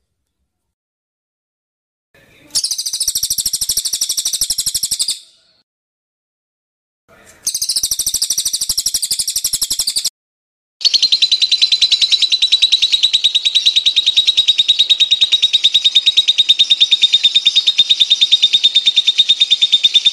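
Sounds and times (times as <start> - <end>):
songbird song in harsh buzzy bursts and rattling trill: 2.6 - 5.3, 7.5 - 10.1, 10.8 - 20.1.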